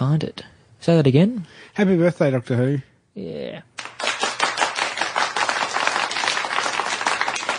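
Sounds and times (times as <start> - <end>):
speech: 0.1 - 3.7
clapping sound effect: 3.8 - 7.5.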